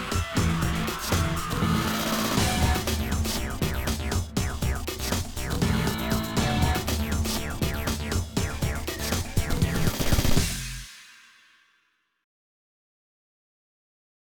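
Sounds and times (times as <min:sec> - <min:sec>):
metal music: 0:00.0 - 0:10.9.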